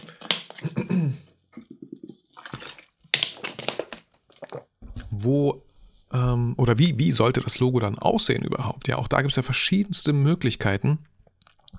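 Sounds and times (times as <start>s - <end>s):
person taking a sip of water: 0.0s - 3.0s, 4.3s - 6.0s, 11.0s - 11.7s
speech: 5.2s - 5.6s, 6.6s - 11.1s.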